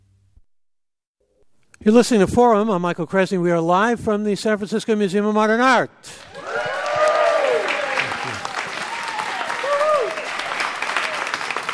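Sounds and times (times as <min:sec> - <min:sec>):
speech: 0:01.8 - 0:06.3
live audience applauding: 0:06.1 - 0:11.7.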